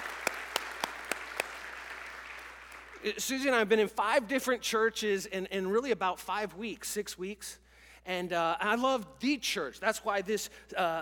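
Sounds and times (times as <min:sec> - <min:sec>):
audience clapping together in a steady rhythm: 0:00.0 - 0:03.1
speech: 0:03.0 - 0:11.0.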